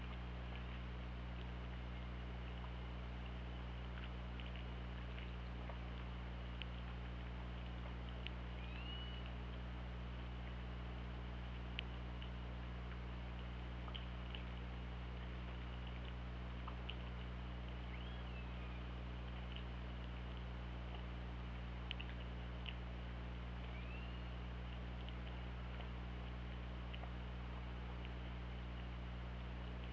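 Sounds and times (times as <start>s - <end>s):
low underwater hum and hiss: 0.0s - 29.9s
orca whistle: 8.6s - 9.2s, 17.9s - 18.8s.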